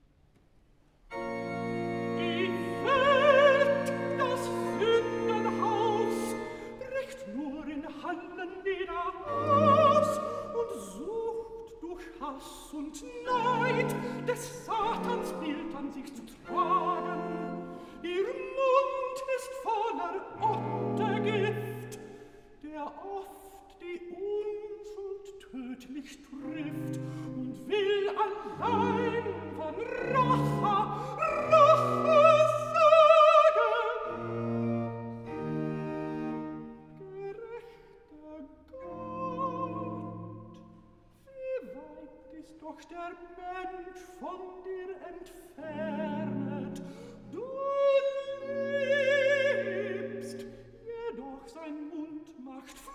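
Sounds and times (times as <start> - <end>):
cantata recitative: 1.1 - 52.9.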